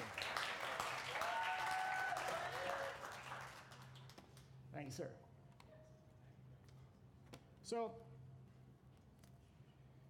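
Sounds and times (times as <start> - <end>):
crowd round of applause: 0.0 - 3.9
speech: 4.9 - 5.3, 7.7 - 8.2.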